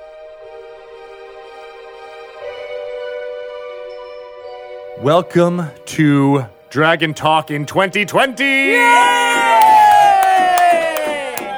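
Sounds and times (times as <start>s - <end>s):
speech: 5.0s - 9.2s
studio audience cheering: 8.6s - 11.5s
sharp regular claps: 9.5s - 11.5s.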